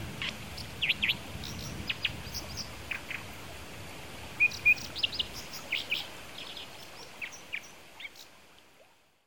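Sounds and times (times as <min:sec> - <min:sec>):
Brown dipper giving sharp high chirping calls in Kitami: 0:00.2 - 0:03.3, 0:04.4 - 0:08.3.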